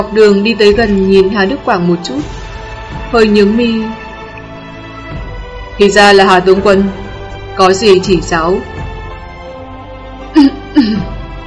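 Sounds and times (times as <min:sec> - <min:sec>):
speech: 0:00.0 - 0:02.4, 0:03.1 - 0:04.0, 0:05.8 - 0:07.0, 0:07.6 - 0:08.8, 0:10.3 - 0:11.2
dry cough: 0:10.4 - 0:11.2.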